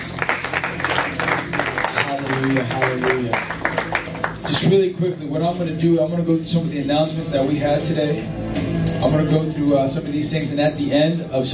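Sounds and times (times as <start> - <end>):
crowd clapping: 0.0 - 4.9
speech: 2.4 - 3.6, 4.5 - 8.4, 9.0 - 11.5.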